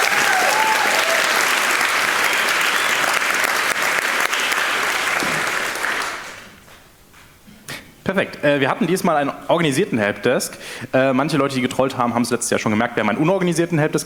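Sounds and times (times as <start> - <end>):
faint whistles or cheers: 0.0 - 1.4
audience applause: 0.0 - 6.6
speech: 8.2 - 14.0.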